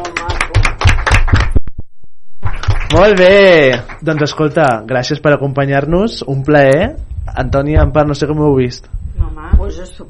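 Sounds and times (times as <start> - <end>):
applause: 0.0 - 1.6, 2.4 - 4.6
speech: 2.9 - 9.0, 9.7 - 10.0.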